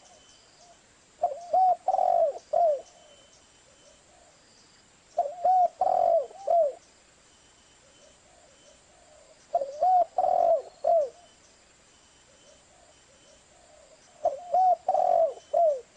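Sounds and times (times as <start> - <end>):
spotted dove cooing: 1.2 - 4.4, 5.2 - 6.8, 7.8 - 11.3, 12.3 - 15.9.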